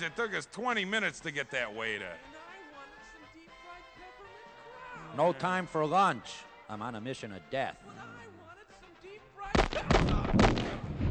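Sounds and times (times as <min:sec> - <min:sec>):
speech: 0:00.0 - 0:02.3, 0:05.1 - 0:08.4
gunshots in a radio drama: 0:09.5 - 0:11.1.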